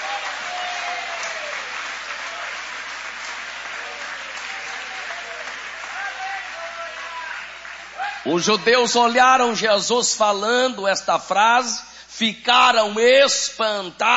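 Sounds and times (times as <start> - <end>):
audience applause: 0.0 - 8.7
speech: 8.3 - 14.1.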